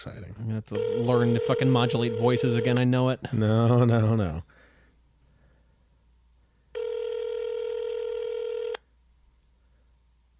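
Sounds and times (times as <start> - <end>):
speech: 0.0 - 4.6
telephone tone while a call is dialed: 0.8 - 2.8, 6.8 - 8.8.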